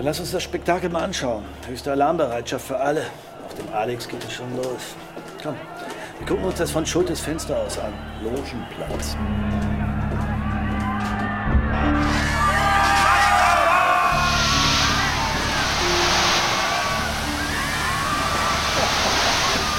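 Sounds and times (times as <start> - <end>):
speech: 0.0 - 9.7
crowd shouting and crying: 7.8 - 19.7
fire hoses spraying water: 14.0 - 19.7.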